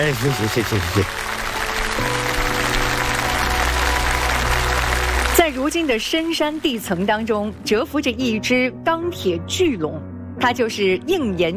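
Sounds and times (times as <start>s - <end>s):
speech: 0.0s - 1.3s, 5.7s - 11.5s
large audience applauding: 0.0s - 7.1s.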